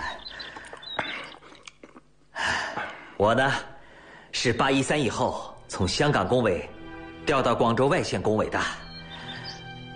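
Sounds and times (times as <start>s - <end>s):
person chewing food: 0.2s - 2.2s
speech: 3.2s - 3.7s, 4.3s - 8.8s.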